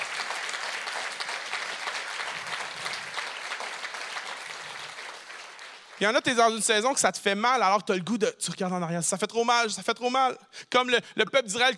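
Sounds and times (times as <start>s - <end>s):
church congregation applauding and cheering: 0.0s - 7.0s
speech: 6.0s - 11.7s.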